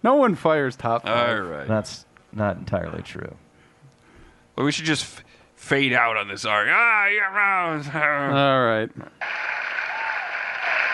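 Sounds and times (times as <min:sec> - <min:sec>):
speech: 0:00.0 - 0:03.4, 0:04.6 - 0:09.5
audience applause: 0:09.2 - 0:10.9.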